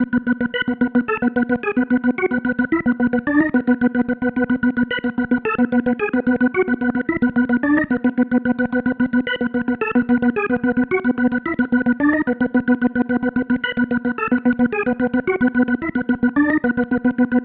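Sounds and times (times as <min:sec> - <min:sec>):
psychedelic organ loop: 0:00.0 - 0:17.4.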